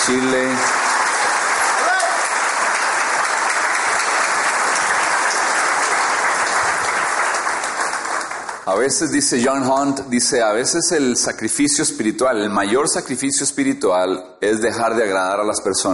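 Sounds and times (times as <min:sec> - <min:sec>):
crowd applauding: 0:00.0 - 0:08.8
speech: 0:00.1 - 0:00.8, 0:08.7 - 0:15.9.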